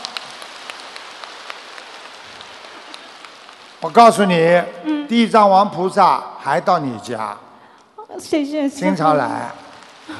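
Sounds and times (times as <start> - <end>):
crowd applauding: 0.0 - 4.0
speech: 3.8 - 7.5, 8.2 - 10.1.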